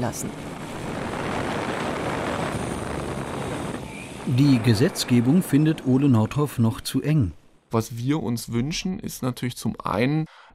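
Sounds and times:
speech: 0.0s - 0.6s, 4.2s - 10.5s
parcel delivery drone flying: 0.3s - 6.8s.

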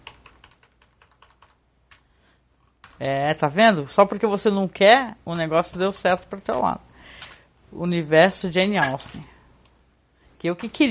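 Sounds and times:
typing on a computer keyboard: 0.0s - 2.1s, 2.7s - 3.1s
speech: 3.0s - 6.9s, 7.7s - 9.3s, 10.4s - 10.9s.

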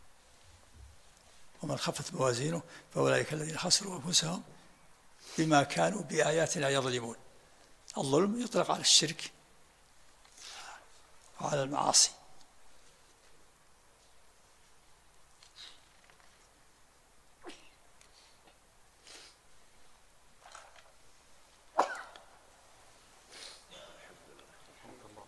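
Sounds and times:
low steady hiss: 0.0s - 25.2s
speech: 1.6s - 4.6s, 5.2s - 7.2s, 8.0s - 9.4s, 11.4s - 12.2s
sneeze: 17.4s - 17.8s, 21.7s - 22.4s.

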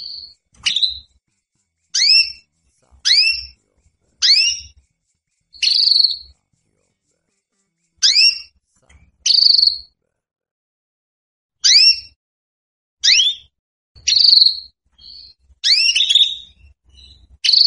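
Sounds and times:
female Belgian canary calling for mating: 0.0s - 1.2s, 1.8s - 3.6s, 4.2s - 4.8s, 5.5s - 6.3s, 8.0s - 8.5s, 9.2s - 9.9s, 11.6s - 12.2s, 13.0s - 17.6s.

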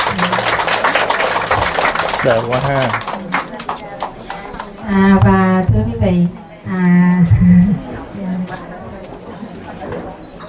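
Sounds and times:
audience applause: 0.0s - 4.7s
speech: 2.2s - 3.1s, 4.9s - 8.3s.

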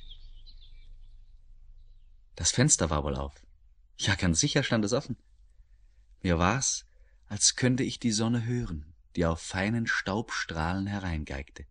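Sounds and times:
high-pitched birdsong: 0.0s - 6.0s
speech: 2.4s - 3.4s, 4.0s - 5.3s, 6.2s - 11.6s.

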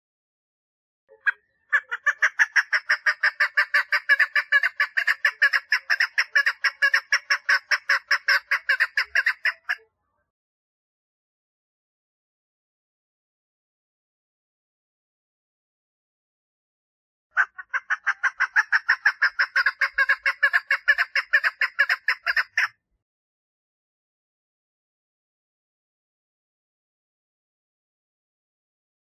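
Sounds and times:
partridge calling: 1.1s - 9.8s, 17.4s - 22.7s.

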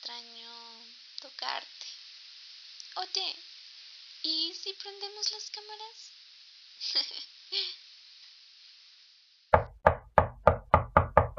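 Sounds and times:
speech: 1.2s - 1.8s, 3.0s - 3.5s, 4.2s - 6.0s, 6.8s - 7.8s
knocking on a door: 9.6s - 11.3s.

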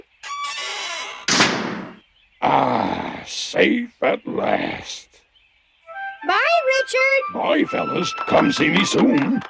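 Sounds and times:
door creaking and slamming shut: 0.2s - 2.0s
speech: 3.5s - 5.1s, 6.2s - 9.4s.

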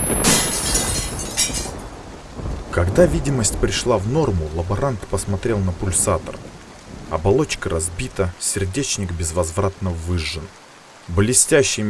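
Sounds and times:
stone in the base of a machine cracking and shattering: 0.0s - 2.0s
steady noisy hiss: 0.0s - 11.8s
speech: 2.8s - 11.8s.

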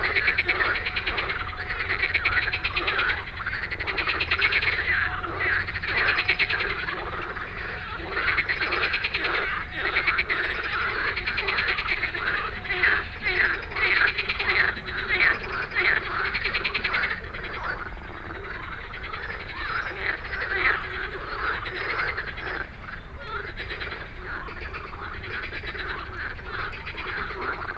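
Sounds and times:
frog chorus croaking: 0.0s - 27.7s.

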